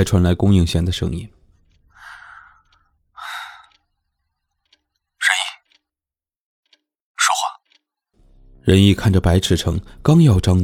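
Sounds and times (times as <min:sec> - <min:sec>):
speech: 0:00.0 - 0:01.4, 0:08.7 - 0:10.6
faint breathing over a phone line: 0:01.9 - 0:03.8.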